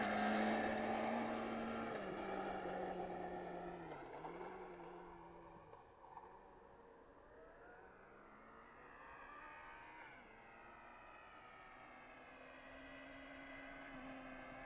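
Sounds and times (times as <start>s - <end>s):
Honda CBR 1100 XX Superblackbird motorcycle engine: 0.0s - 5.5s.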